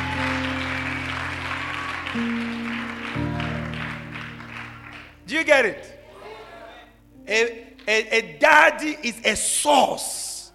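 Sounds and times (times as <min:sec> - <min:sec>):
audience clapping: 0:00.0 - 0:05.8
held organ or keyboard chords: 0:00.0 - 0:06.1, 0:06.9 - 0:10.5
speech: 0:02.2 - 0:02.5, 0:05.3 - 0:06.0, 0:07.3 - 0:10.3.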